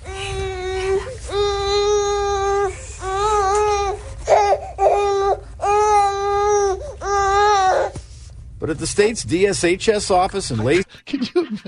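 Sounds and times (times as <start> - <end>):
teething baby crying at a Washington state DSHS office in Lacey: 0.1 - 8.0
speech: 8.7 - 11.6.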